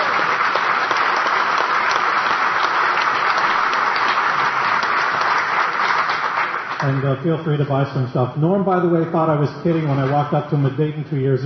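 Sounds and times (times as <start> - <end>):
audience applause for a vendor at a woodworking gathering: 0.0 - 7.5, 8.9 - 10.5
speech: 6.8 - 11.4.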